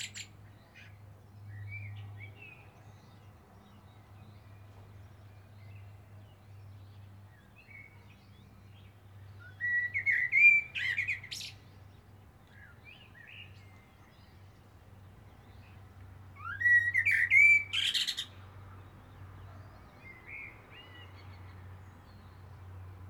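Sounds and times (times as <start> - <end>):
common blackbird whistling: 9.5 - 11.5, 16.4 - 18.3.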